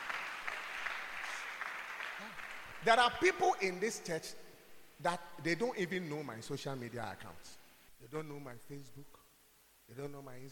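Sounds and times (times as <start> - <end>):
church congregation clapping for Jesus: 0.0 - 3.8
speech: 2.3 - 4.4, 5.0 - 9.2, 9.9 - 10.4.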